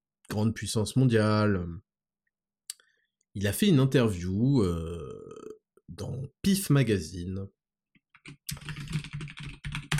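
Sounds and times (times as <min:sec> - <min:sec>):
speech: 0:00.3 - 0:01.9, 0:03.4 - 0:07.6, 0:08.2 - 0:09.1
typing on a computer keyboard: 0:08.1 - 0:09.9.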